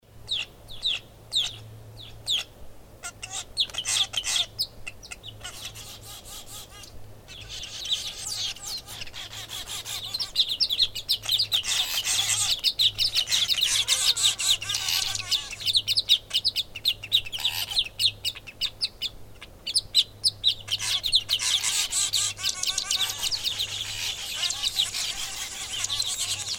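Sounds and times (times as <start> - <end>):
weaver birds calling: 0.2 - 26.5
Egyptian geese calling: 2.3 - 16.5, 20.5 - 26.5.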